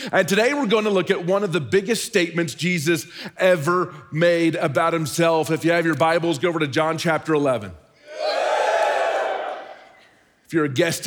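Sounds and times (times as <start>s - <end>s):
speech: 0.0s - 8.4s, 10.5s - 11.0s
audience cheering: 8.0s - 10.1s.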